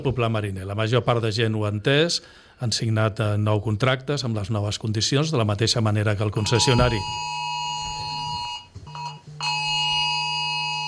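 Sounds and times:
speech: 0.0s - 7.4s
Civil Protection alarm, loud steady high electronic tone: 6.4s - 10.8s.

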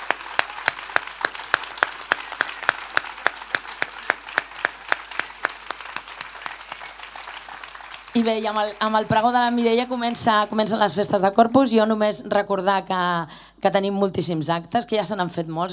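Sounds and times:
audience applause: 0.0s - 10.4s
speech: 8.2s - 15.7s.

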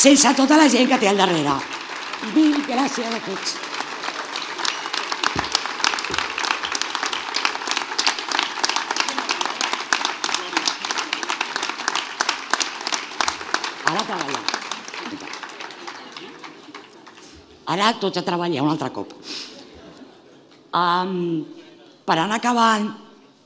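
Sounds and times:
speech: 0.0s - 3.7s, 17.7s - 19.4s, 20.7s - 23.0s
audience applause: 0.0s - 17.6s.

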